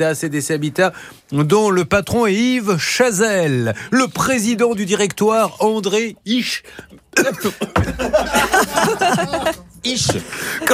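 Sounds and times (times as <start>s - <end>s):
speech: 0.0s - 10.7s
person coughing after swallowing the wrong way: 6.9s - 9.2s
laughter: 7.0s - 10.7s.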